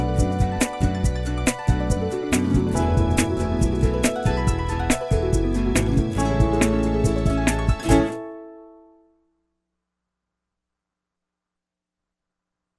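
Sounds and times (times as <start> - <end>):
lounge music: 0.0 - 8.9.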